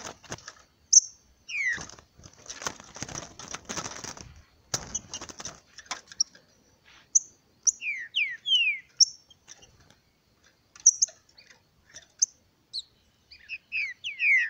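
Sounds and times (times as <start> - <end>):
green-winged saltator song of downslurred whistled notes: 0.9 - 1.9, 7.1 - 9.4, 10.8 - 11.5, 12.2 - 14.4.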